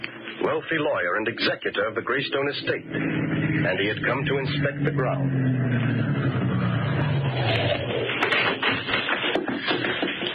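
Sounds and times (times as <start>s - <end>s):
big car rolling up and stopping: 0.0s - 10.3s
speech: 0.5s - 6.4s
crunching and tapping noises: 7.9s - 10.3s.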